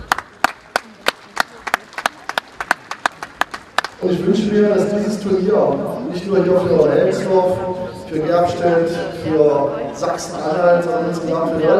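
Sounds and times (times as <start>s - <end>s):
audience applause: 0.0s - 4.0s
speech: 4.0s - 11.7s.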